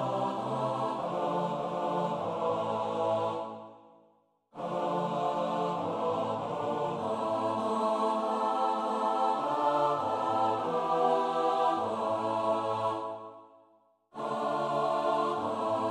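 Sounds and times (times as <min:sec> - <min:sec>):
SATB choir singing a psalm, split parts: 0:00.0 - 0:15.9.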